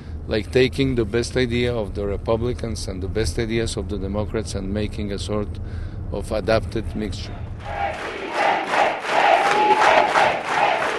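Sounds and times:
speech: 0:00.3 - 0:08.0
theater full of women cheering a welcome for a political candidate: 0:07.6 - 0:10.9.

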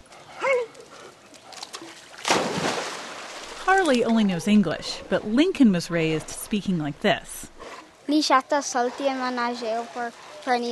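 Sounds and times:
dog plunging into backyard pool: 0:01.5 - 0:04.1
speech: 0:03.7 - 0:07.5, 0:08.1 - 0:10.7.

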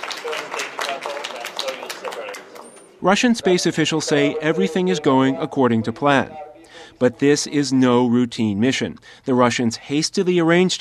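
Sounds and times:
applause at Russian Mission Control: 0:00.0 - 0:02.8
speech: 0:03.0 - 0:10.8.

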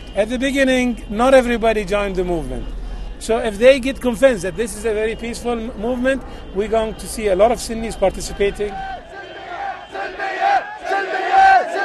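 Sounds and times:
speech: 0:00.2 - 0:09.0
protest crowd chanting in unison: 0:08.8 - 0:11.8.

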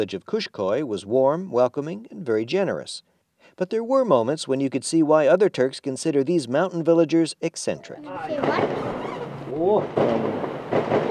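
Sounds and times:
speech: 0:00.0 - 0:09.0, 0:09.6 - 0:11.0
volley of gunfire echoing across valley: 0:08.3 - 0:11.0.

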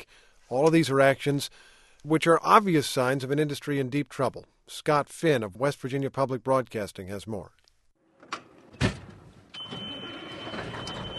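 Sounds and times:
speech: 0:00.0 - 0:07.6
diesel truck rig engine starting up: 0:09.0 - 0:11.1.

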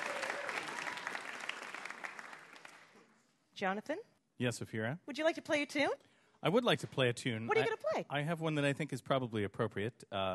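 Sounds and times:
audience applause for a quiz winner at a live quiz event: 0:00.0 - 0:03.0
speech: 0:03.6 - 0:10.3.

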